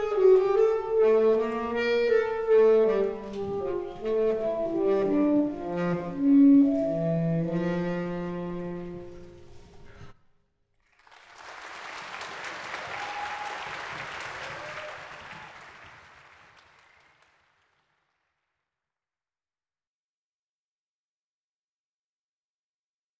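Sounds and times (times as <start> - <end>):
alto saxophone: 0.0 - 10.1.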